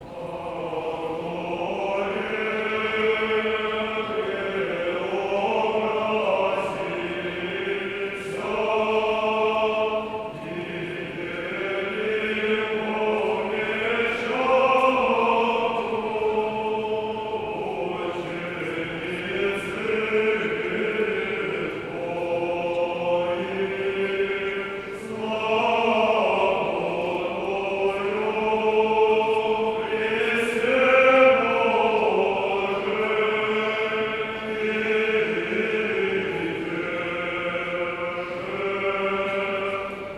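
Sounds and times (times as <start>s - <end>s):
choir singing a sacred kontakion: 0.0s - 40.1s.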